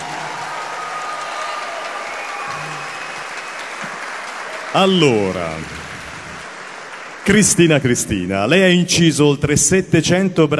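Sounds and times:
audience applause: 0.0s - 8.2s
speech: 4.7s - 5.9s, 7.2s - 10.5s.

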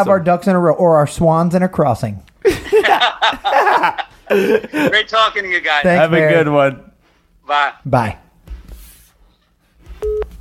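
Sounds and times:
speech: 0.0s - 6.9s, 7.5s - 8.2s
low noise: 0.0s - 10.3s
laughter: 2.4s - 5.2s
iPhone call hang-up beep: 10.0s - 10.3s.

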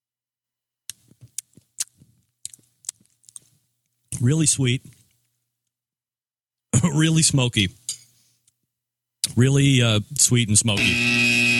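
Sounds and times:
crunchy wet chewing of food with smoky sauce during a taste test: 0.9s - 4.0s
speech: 4.2s - 5.0s, 7.0s - 7.9s, 9.4s - 11.4s.

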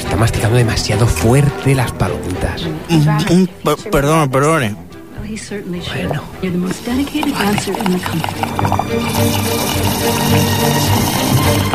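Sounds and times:
speech: 0.2s - 11.7s
person slurping a cola drink through a straw: 6.6s - 11.7s.

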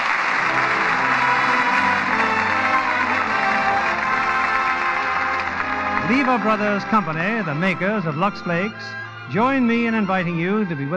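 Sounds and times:
studio audience applause: 0.0s - 7.8s
speech: 6.1s - 10.9s.

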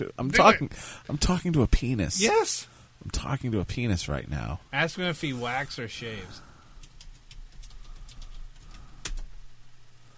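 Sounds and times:
speech: 0.0s - 6.5s
low hum: 0.0s - 10.1s
typing on a keyboard: 6.8s - 9.3s.

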